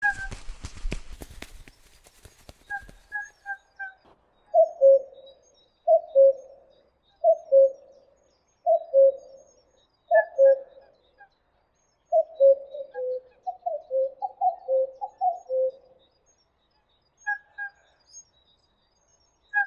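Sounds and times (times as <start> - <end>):
cuckoo calling: 0.0 - 0.8, 2.2 - 11.0, 12.1 - 15.9.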